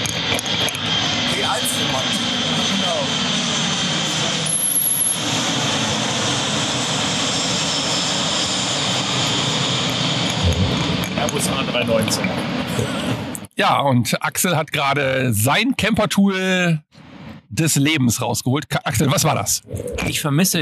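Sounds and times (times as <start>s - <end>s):
airplane engine roar on approach to land: 0.0s - 13.4s
speech: 11.3s - 13.0s, 13.6s - 16.9s, 17.5s - 20.6s.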